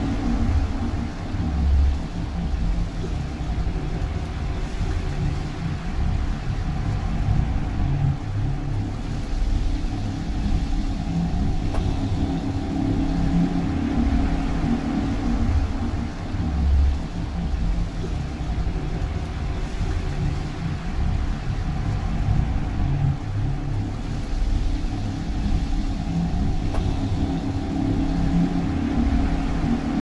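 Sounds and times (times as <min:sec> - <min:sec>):
juggernaut ship engine idling: 0:00.0 - 0:30.0.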